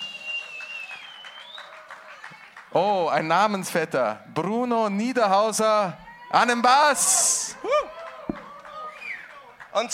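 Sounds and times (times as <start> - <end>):
thin high-pitched whistle-like tone: 0.0 - 1.6
audience applause: 0.0 - 2.8, 7.9 - 9.9
speech: 2.7 - 7.7, 9.8 - 9.9.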